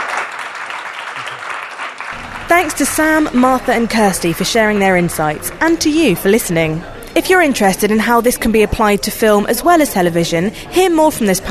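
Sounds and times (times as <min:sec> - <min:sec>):
audience applause for the panel: 0:00.0 - 0:06.4
speech: 0:02.5 - 0:11.4.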